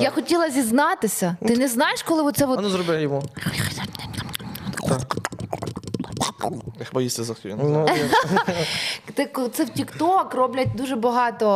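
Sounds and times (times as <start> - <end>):
speech: 0.0 - 4.1, 6.4 - 11.5
ASMR mouth crunching into a microphone: 3.2 - 6.9
laughter: 7.8 - 8.9.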